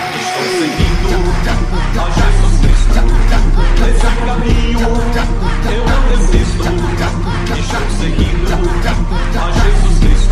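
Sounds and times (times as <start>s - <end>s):
funk music remix: 0.0s - 10.3s.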